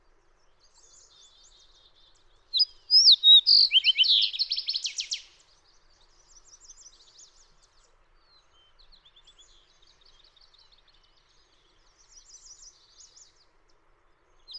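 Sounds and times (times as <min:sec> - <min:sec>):
fox sparrow singing: 0:02.6 - 0:05.4.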